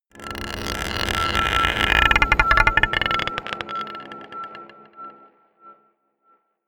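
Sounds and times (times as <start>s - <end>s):
scraping a marble pot: 0.2s - 4.8s
dark drones: 0.2s - 5.8s.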